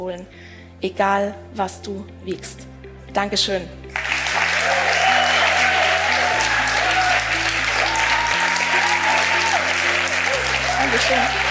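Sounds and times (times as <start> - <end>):
speech: 0.0 - 4.0, 11.0 - 11.4
audience applause: 4.0 - 11.4.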